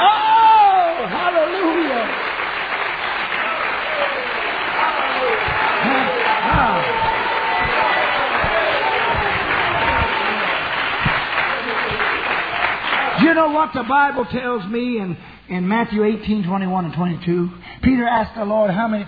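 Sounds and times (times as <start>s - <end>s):
audience clapping hands: 0.0s - 13.8s
speech: 13.4s - 19.0s.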